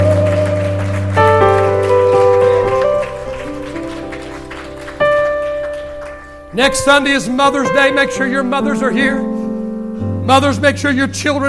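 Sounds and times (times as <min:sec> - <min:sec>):
audience applause and cheers: 0:00.0 - 0:06.6
organ or keyboard chords: 0:00.0 - 0:11.4
speech: 0:06.6 - 0:09.3, 0:10.3 - 0:11.4.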